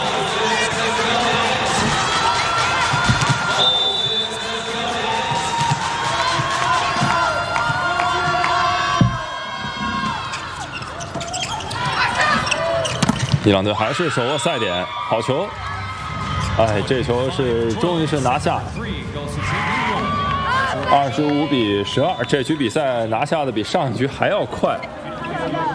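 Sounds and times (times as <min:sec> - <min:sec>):
scattered cheers: 0:00.0 - 0:13.0, 0:13.6 - 0:18.4, 0:19.2 - 0:23.1
large arena crowd roaring: 0:00.0 - 0:23.9
arena crowd rhythmic unison clapping: 0:05.3 - 0:09.3
speech: 0:13.5 - 0:15.7, 0:16.6 - 0:19.5, 0:20.9 - 0:25.7.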